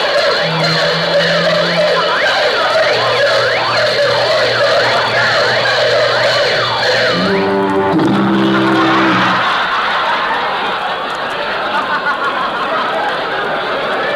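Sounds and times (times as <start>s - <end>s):
burglar alarm ringing: 0.1s - 9.6s
crowd laughing and chattering: 0.3s - 14.1s.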